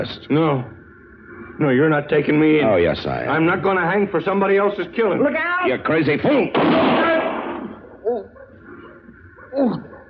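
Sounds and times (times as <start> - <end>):
speech: 0.0 - 0.8, 1.6 - 7.2, 9.5 - 9.9
gunshot in a Western radio drama: 6.5 - 7.8.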